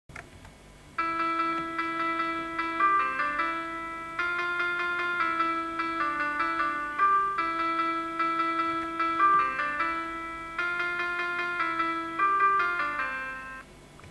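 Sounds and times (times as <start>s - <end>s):
jingle: 1.0s - 13.6s.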